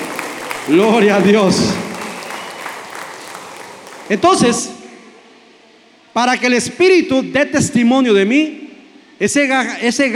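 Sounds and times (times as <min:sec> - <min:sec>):
audience applause: 0:00.0 - 0:04.7
speech: 0:00.7 - 0:01.9, 0:04.1 - 0:04.8, 0:06.2 - 0:08.6, 0:09.2 - 0:10.1.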